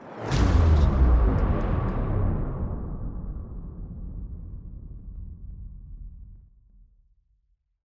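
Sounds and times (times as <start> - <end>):
bass drop: 0.2 - 6.4.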